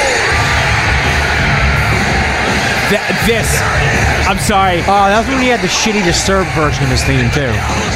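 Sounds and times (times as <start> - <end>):
wrestling crowd screaming and chanting for Stone Cold: 0.0 - 7.9
speech: 2.9 - 7.9.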